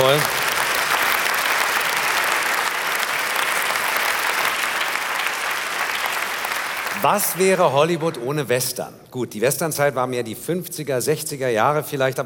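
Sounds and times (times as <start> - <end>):
audience applause: 0.0 - 8.2
speech: 7.0 - 12.2.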